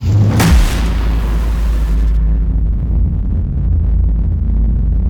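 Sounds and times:
designed sci-fi cinematic hits: 0.0 - 5.0.

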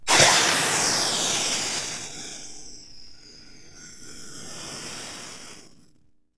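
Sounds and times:
steam sizzle hit: 0.1 - 2.8.

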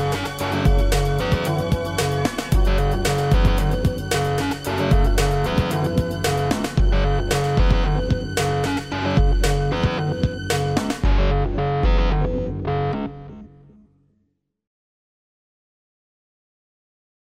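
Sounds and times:
new age music: 0.0 - 13.6.

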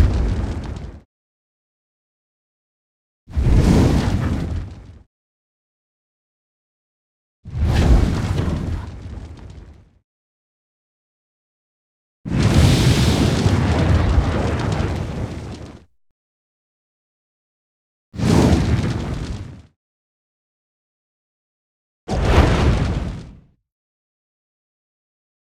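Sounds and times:
fire crackle: 0.0 - 1.0, 7.6 - 9.8, 12.3 - 15.9, 18.2 - 19.6, 22.2 - 23.2
dragon fire whooshes: 3.3 - 5.0, 7.5 - 9.8, 12.3 - 15.8, 18.2 - 19.6, 22.1 - 23.3.

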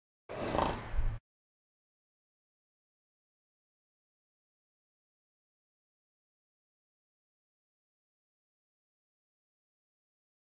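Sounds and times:
farm animal snorts: 0.3 - 1.2.

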